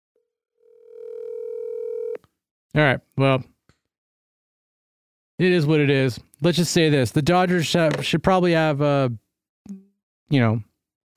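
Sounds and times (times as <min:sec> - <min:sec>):
telephone dial tone while calling someone at home: 0:00.6 - 0:02.2
speech: 0:02.8 - 0:03.5, 0:05.4 - 0:10.7.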